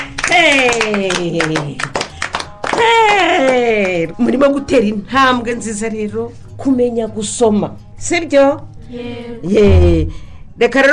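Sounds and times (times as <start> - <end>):
children clapping hands on a children's programme: 0.0 - 4.2
speech: 0.4 - 1.9, 2.8 - 10.9.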